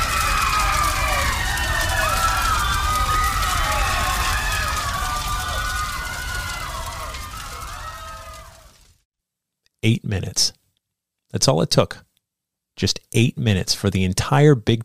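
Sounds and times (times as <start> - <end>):
rushing roar of crowd running: 0.0 - 8.8
panicked crowd screaming: 0.0 - 8.9
speech: 9.9 - 10.6, 11.3 - 12.1, 12.8 - 14.8.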